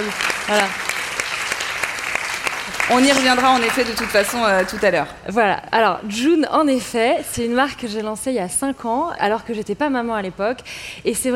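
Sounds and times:
speech: 0:00.0 - 0:00.8, 0:02.9 - 0:11.3
crowd applauding: 0:00.0 - 0:05.1.

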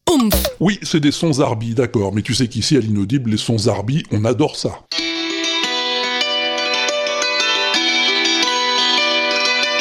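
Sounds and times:
speech: 0:00.2 - 0:05.1
hammered dulcimer strings struck with sticks: 0:04.9 - 0:09.7.

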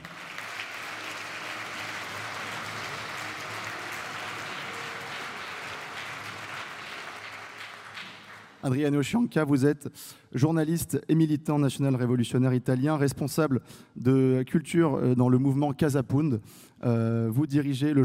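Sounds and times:
audience applause: 0:00.0 - 0:08.7
speech: 0:08.6 - 0:18.0.

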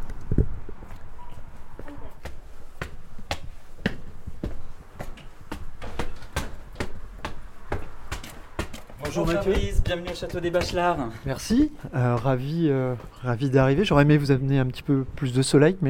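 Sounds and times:
footsteps climbing stairs at the Château des Bachelards: 0:00.8 - 0:13.4
speech: 0:09.2 - 0:15.8.

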